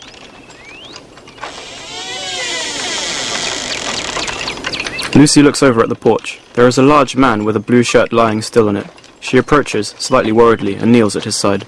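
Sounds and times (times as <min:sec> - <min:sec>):
shed door squeaking open: 0:01.3 - 0:05.2
speech: 0:05.2 - 0:11.6.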